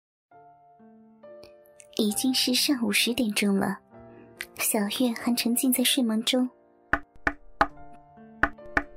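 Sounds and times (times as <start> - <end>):
speech: 2.0 - 3.8, 4.6 - 6.6
knocking on a door: 6.9 - 7.8, 8.4 - 8.9.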